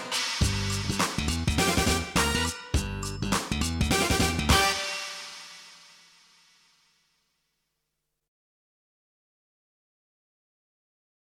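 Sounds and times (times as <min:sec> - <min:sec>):
recorder playing funky music in practice: 0:00.0 - 0:05.5.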